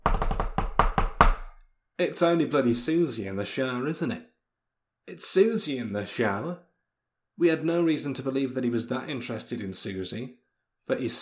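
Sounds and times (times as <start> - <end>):
drumroll tapped out by hand on a hard surface: 0.0 - 1.4
speech: 2.0 - 4.3, 5.0 - 6.7, 7.4 - 11.2.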